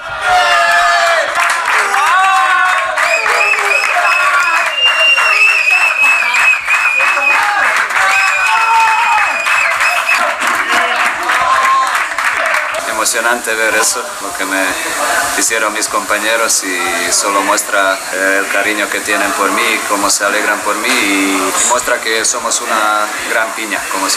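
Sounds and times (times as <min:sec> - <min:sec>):
teammates cheering in dressing room: 0:00.0 - 0:24.1
clapping: 0:00.7 - 0:12.9
speech: 0:13.2 - 0:24.1.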